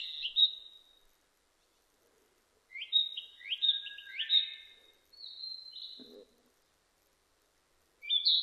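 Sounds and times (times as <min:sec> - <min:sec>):
Narcissus flycatcher singing varied whistles and trills: 0:00.0 - 0:01.0, 0:02.7 - 0:06.0, 0:08.0 - 0:08.4.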